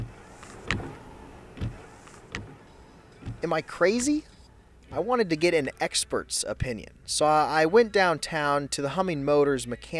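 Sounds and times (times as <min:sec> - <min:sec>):
car windshield wipers running after being switched off: 0:00.0 - 0:04.1
speech: 0:03.4 - 0:04.3, 0:04.9 - 0:09.9.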